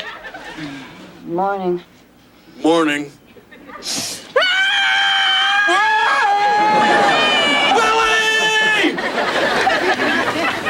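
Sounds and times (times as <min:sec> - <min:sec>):
laughter: 0:00.0 - 0:00.9, 0:03.3 - 0:04.0, 0:06.2 - 0:10.6
speech: 0:00.6 - 0:02.0, 0:02.6 - 0:03.2, 0:03.8 - 0:04.1
screaming: 0:04.4 - 0:09.0.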